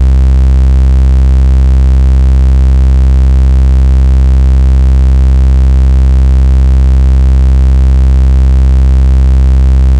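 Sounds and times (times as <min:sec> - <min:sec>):
sawtooth bass: 0:00.0 - 0:09.9.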